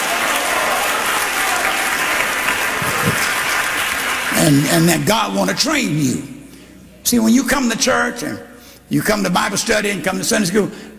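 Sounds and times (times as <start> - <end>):
audience clapping: 0.0 - 4.7
speech: 4.4 - 6.3, 7.1 - 10.9.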